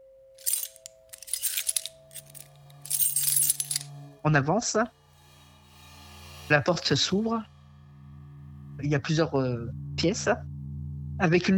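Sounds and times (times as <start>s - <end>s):
keys jangling: 0.4s - 3.9s
speech: 4.2s - 5.0s, 6.5s - 7.5s, 8.8s - 10.5s, 11.2s - 11.5s.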